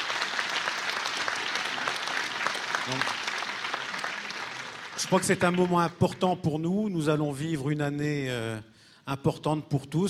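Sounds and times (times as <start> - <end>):
audience applause at a conference evening in Plozevet: 0.0 - 6.0
speech: 2.9 - 3.2, 5.0 - 10.0.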